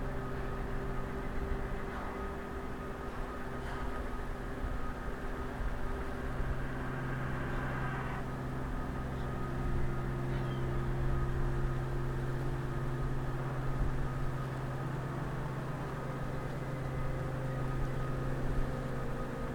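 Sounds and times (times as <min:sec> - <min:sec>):
soundscape in Brösarp: 0:00.0 - 0:19.5.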